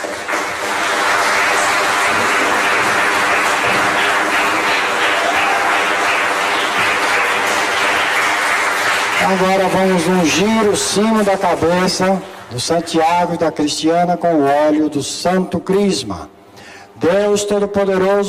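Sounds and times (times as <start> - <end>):
audience applause: 0.0 - 13.0
speech: 9.3 - 16.4, 17.0 - 18.2.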